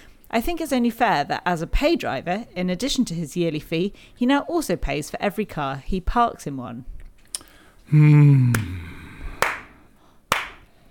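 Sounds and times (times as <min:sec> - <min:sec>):
speech: 0:00.3 - 0:06.9, 0:07.9 - 0:08.9
hand clapping: 0:08.5 - 0:08.7, 0:09.4 - 0:09.7, 0:10.3 - 0:10.7.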